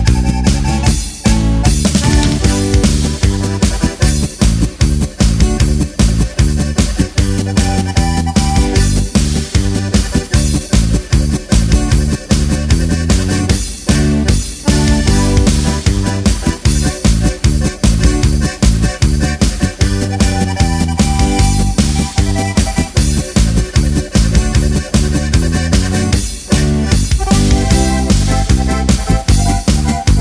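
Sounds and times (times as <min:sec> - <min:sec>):
polka with accordion accompaniment: 0:00.0 - 0:30.1.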